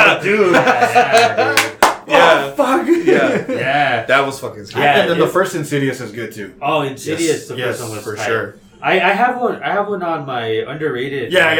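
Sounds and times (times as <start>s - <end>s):
laughter: 0.0s - 4.0s, 4.7s - 5.4s
speech: 0.2s - 11.5s
hand claps imitating horror movie scene: 1.1s - 2.1s.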